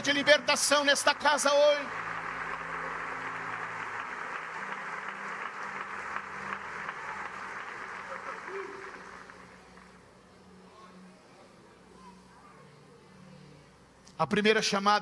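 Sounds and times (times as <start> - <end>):
speech: 0.0 - 2.1, 14.2 - 15.0
audience applauding: 0.0 - 10.0.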